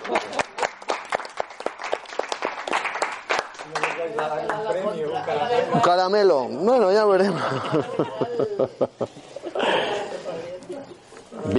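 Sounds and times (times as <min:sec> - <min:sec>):
laughter: 0:00.0 - 0:00.6, 0:07.0 - 0:10.9
audience applause: 0:00.0 - 0:04.8
speech: 0:04.2 - 0:09.4.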